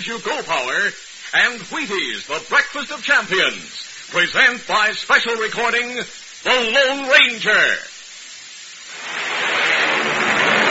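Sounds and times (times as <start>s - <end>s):
speech: 0.0s - 7.9s
American Airlines flagship airliner taking off: 8.9s - 10.6s.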